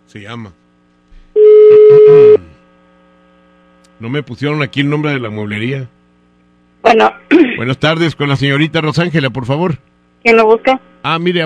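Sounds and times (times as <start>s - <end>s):
speech: 0.1s - 0.6s, 1.9s - 2.6s, 4.0s - 6.0s, 6.8s - 11.4s
telephone ringing tone: 1.4s - 2.4s.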